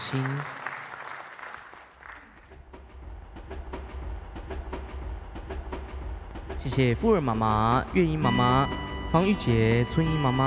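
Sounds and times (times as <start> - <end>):
audience applause at a gathering: 0.0 - 2.6
speech: 0.1 - 0.6, 6.6 - 10.4.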